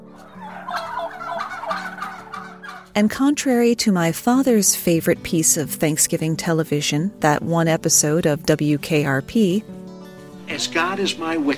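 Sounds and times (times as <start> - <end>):
turkey gobbling: 0.1 - 3.0
speech: 3.0 - 9.8, 10.5 - 11.5.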